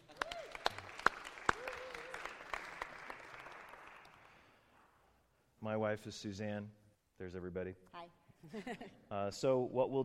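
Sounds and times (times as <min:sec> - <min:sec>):
audience applause: 0:00.0 - 0:04.4
speech: 0:05.6 - 0:10.0.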